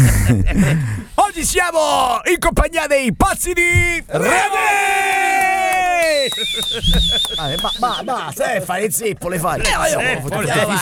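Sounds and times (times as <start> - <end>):
speech: 0.3 - 10.8
group of voices shouting and yelling: 4.2 - 6.3
laughter: 5.7 - 8.9.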